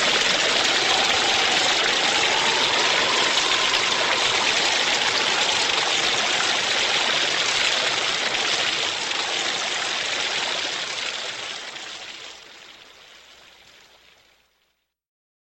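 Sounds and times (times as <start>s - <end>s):
storm: 0.0s - 10.8s.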